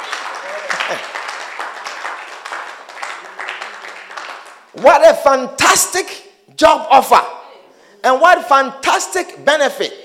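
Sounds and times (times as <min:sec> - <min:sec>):
audience clapping: 0:00.0 - 0:05.0
speech: 0:00.9 - 0:01.2, 0:04.8 - 0:07.4, 0:08.0 - 0:10.0.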